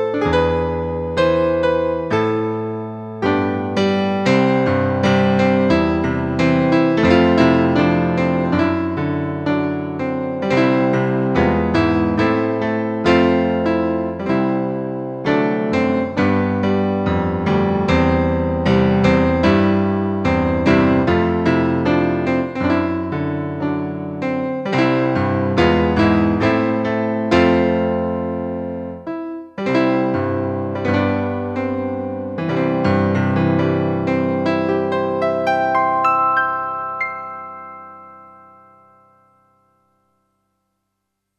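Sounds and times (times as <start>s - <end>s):
piano: 0.0s - 41.3s.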